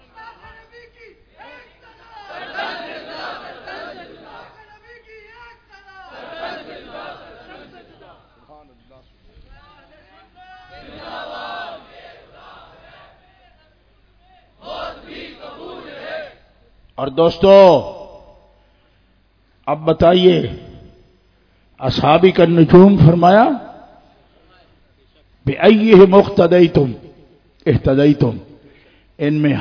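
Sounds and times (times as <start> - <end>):
crowd at a religious gathering shouting the slogans Takbir and Risalat: 1.4 - 4.6, 6.0 - 8.4, 10.6 - 13.2, 14.6 - 16.5
speech: 17.0 - 17.9, 19.7 - 20.6, 21.8 - 23.6, 25.6 - 27.0, 27.6 - 28.5, 29.2 - 29.5.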